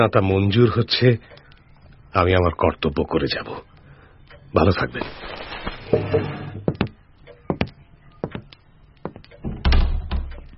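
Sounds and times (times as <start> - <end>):
speech: 0.0 - 1.4, 2.1 - 3.7, 4.5 - 6.4
door closing: 9.4 - 10.4.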